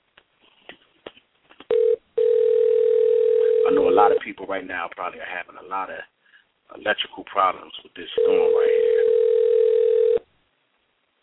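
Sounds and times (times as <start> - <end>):
telephone dial tone of outgoing call: 1.7 - 4.2, 8.2 - 10.2
speech: 4.0 - 9.0.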